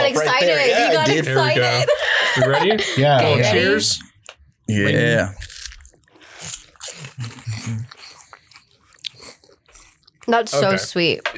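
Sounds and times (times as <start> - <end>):
laughter: 0.0 - 4.0
speech: 0.1 - 4.1, 4.7 - 5.5, 10.3 - 11.3
soft wet mouth sounds: 5.3 - 10.6
apple pie chips crunching while chewed: 5.4 - 10.5.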